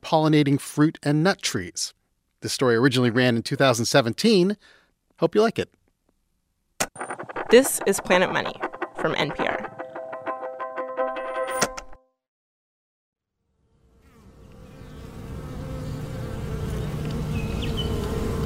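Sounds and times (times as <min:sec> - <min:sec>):
speech: 0:00.1 - 0:05.8, 0:06.9 - 0:09.7
dense swarm of honeybees buzzing: 0:13.5 - 0:18.4.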